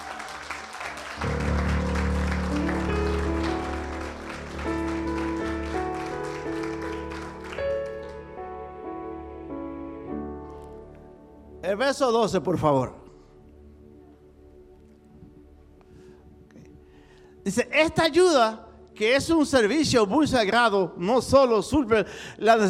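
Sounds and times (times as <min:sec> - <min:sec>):
audience applause: 0:00.0 - 0:08.4
steady organ-like tones: 0:01.2 - 0:08.9
speech: 0:11.7 - 0:13.0, 0:17.5 - 0:22.6.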